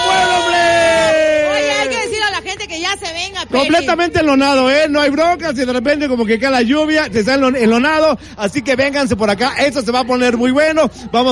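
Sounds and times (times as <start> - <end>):
crowd cheering and whooping: 0.0 - 2.3
people shouting and yelling: 0.0 - 11.3
speech: 3.5 - 11.3.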